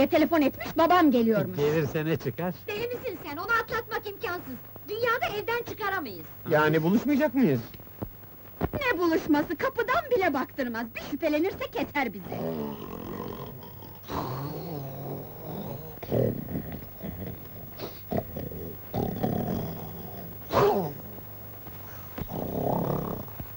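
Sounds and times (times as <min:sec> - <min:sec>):
speech: 0:00.0 - 0:07.8, 0:08.8 - 0:13.2, 0:16.1 - 0:16.7
sleeping man snoring loudly: 0:12.2 - 0:21.2, 0:21.8 - 0:23.5.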